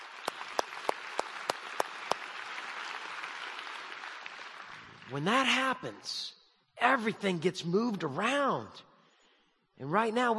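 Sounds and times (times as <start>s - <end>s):
audience applause: 0.0s - 5.5s
speech: 5.1s - 8.9s, 9.8s - 10.3s.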